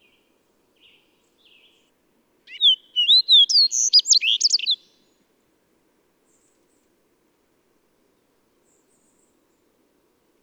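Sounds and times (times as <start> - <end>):
bird singing whistled slurs and twittering: 2.5 - 4.9.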